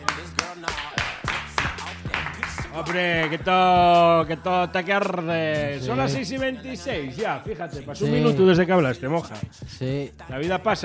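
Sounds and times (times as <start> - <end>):
timid applause: 0.0 - 3.9
speech: 2.8 - 10.8.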